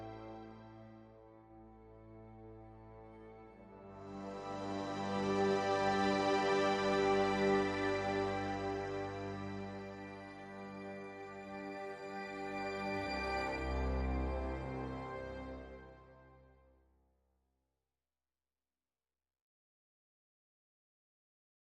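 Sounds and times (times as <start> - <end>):
strings: 0.0 - 16.5.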